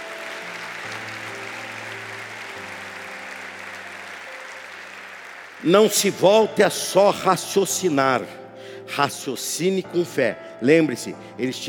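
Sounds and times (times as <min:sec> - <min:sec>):
audience applause: 0:00.0 - 0:06.2
speech: 0:05.6 - 0:11.6.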